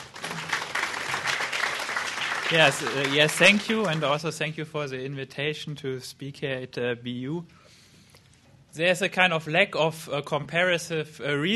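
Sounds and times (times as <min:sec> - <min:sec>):
audience applause welcoming a professor to a university lecture: 0:00.0 - 0:04.2
speech: 0:02.5 - 0:07.6, 0:08.8 - 0:11.5.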